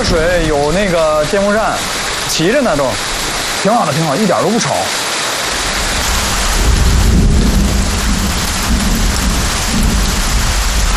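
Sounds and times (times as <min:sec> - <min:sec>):
thunder: 0:00.0 - 0:02.1, 0:05.5 - 0:10.9
heavy rain: 0:00.0 - 0:10.9
speech: 0:00.1 - 0:05.1.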